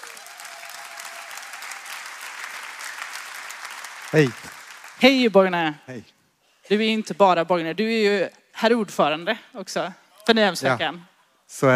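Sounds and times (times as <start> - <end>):
audience applause: 0.0 - 5.1
speech: 4.1 - 11.7.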